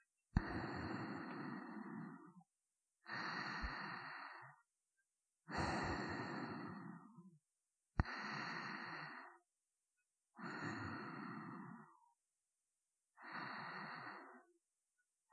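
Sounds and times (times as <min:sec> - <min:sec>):
person breathing in sleep: 0:00.4 - 0:02.4, 0:03.0 - 0:04.6, 0:05.5 - 0:07.3, 0:08.0 - 0:09.5, 0:10.4 - 0:12.2, 0:13.2 - 0:14.6.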